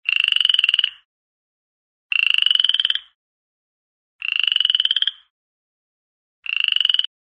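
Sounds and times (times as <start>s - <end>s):
frog croaking: 0.0s - 1.1s, 2.1s - 3.2s, 4.2s - 5.3s, 6.4s - 7.1s.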